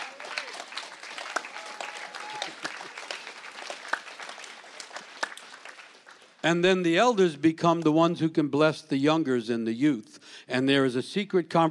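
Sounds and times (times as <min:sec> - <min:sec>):
crowd applauding: 0:00.0 - 0:06.5
speech: 0:06.4 - 0:11.7.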